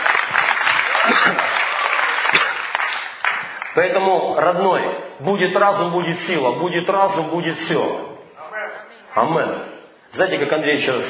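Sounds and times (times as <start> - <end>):
audience applause: 0.0 - 3.8
speech: 1.1 - 1.6, 3.8 - 8.1, 9.2 - 11.0.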